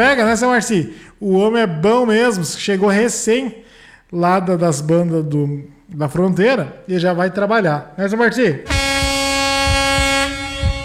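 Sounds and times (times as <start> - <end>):
speech: 0.0 - 8.9
delivery driver's vehicle horn honking: 8.7 - 10.8
low thumps: 8.7 - 10.8.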